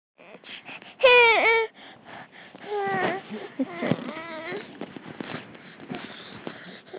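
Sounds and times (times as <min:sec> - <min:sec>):
hungry baby boy: 0:00.2 - 0:06.9.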